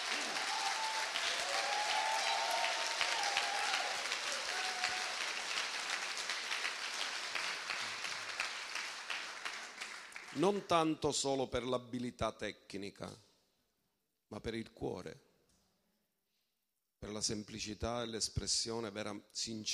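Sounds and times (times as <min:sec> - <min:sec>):
faint cheers: 0:00.0 - 0:05.6
crowd applause: 0:00.0 - 0:10.5
speech: 0:10.4 - 0:13.3, 0:14.3 - 0:15.3, 0:17.0 - 0:19.7.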